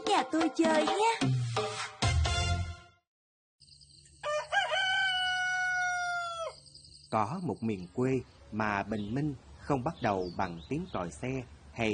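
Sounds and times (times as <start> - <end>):
speech: 0.1 - 1.9, 7.1 - 11.9
rooster crowing: 4.2 - 6.6.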